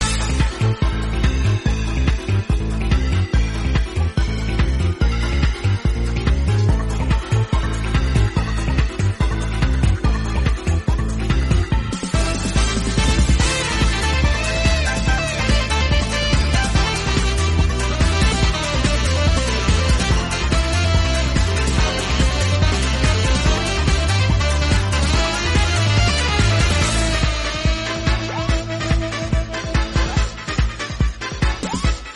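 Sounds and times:
saxophone solo background music: 0.0s - 11.0s, 11.9s - 32.1s.

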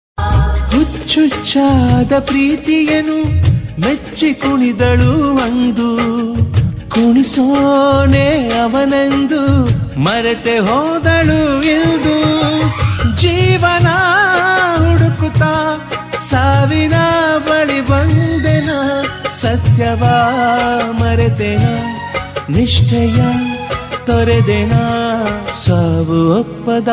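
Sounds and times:
Kannada songs: 0.2s - 26.9s.

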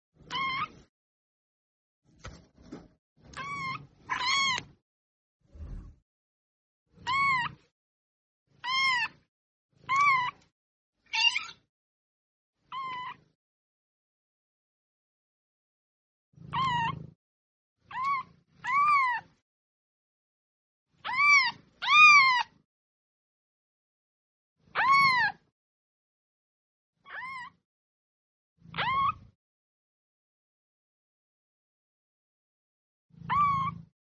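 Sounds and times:
kitten meowing: 0.2s - 0.8s, 3.4s - 4.7s, 7.0s - 7.5s, 8.6s - 9.2s, 9.8s - 10.4s, 12.7s - 13.2s, 16.5s - 17.0s, 17.9s - 19.3s, 21.0s - 22.5s, 24.8s - 25.4s, 27.0s - 27.6s, 28.7s - 29.3s, 33.2s - 33.9s.

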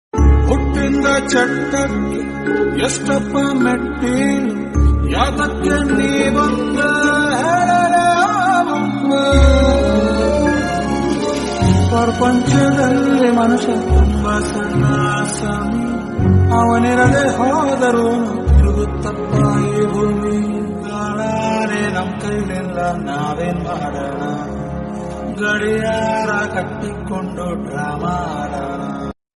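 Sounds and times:
sad Kannada song: 0.2s - 29.2s.

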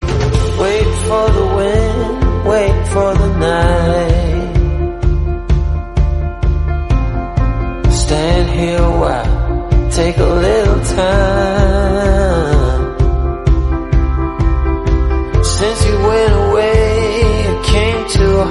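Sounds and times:
English song: 0.0s - 18.4s.

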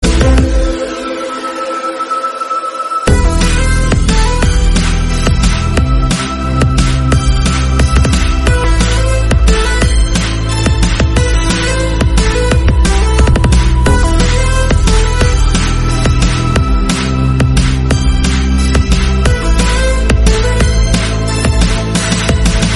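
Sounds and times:
background music theme: 0.0s - 22.7s.

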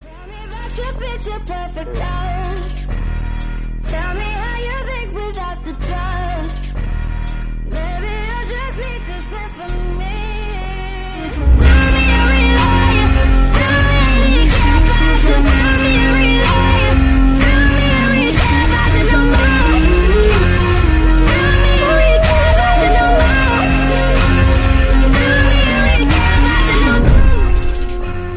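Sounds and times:
lofi music: 0.0s - 28.3s.

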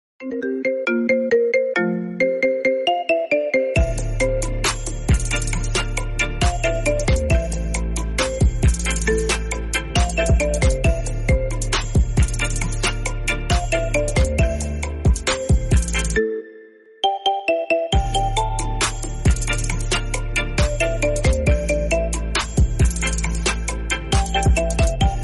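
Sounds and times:
instrumental background music: 0.2s - 25.2s.

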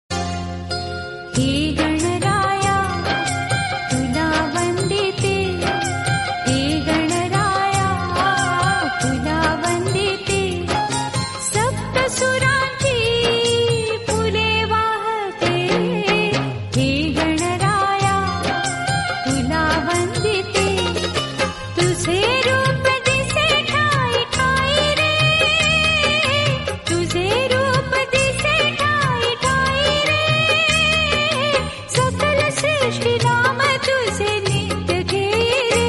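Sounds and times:
Marathi Ganpati devotional song: 0.2s - 35.8s.

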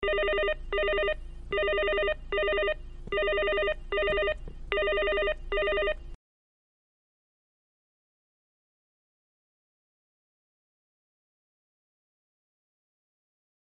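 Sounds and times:
business phone ringing: 0.0s - 6.2s.

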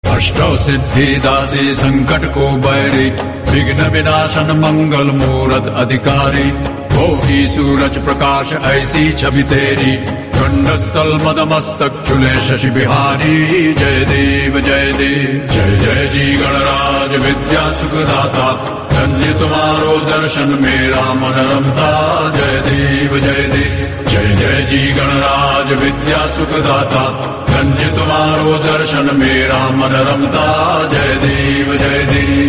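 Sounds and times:
mantra and aarti devotional song: 0.0s - 32.4s.

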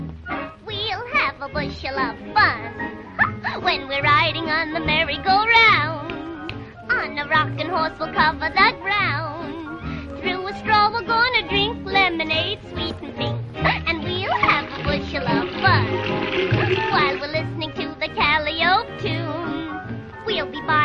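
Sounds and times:
fun song: 0.0s - 20.8s.

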